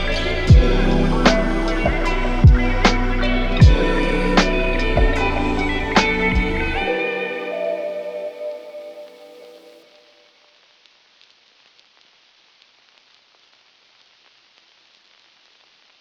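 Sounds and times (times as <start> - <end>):
lo-fi music on old tape: 0.0 - 9.8.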